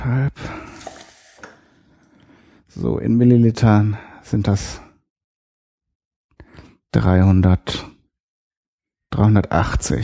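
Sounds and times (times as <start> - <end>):
speech: 0.0 - 0.6, 2.8 - 4.8, 6.9 - 7.9, 9.1 - 10.0
water poured into a cup: 0.5 - 1.8.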